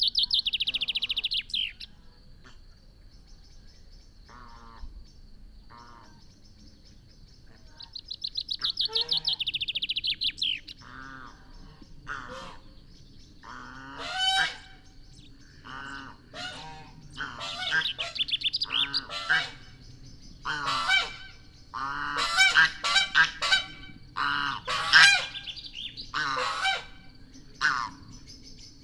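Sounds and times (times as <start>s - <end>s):
common chaffinch Fringilla coelebs singing: 0.0s - 2.0s, 6.2s - 28.8s.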